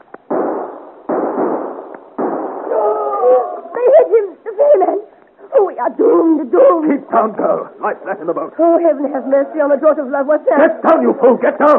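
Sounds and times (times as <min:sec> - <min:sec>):
gunfire volley: 0:00.3 - 0:03.0
speech: 0:04.5 - 0:05.1, 0:05.8 - 0:11.7.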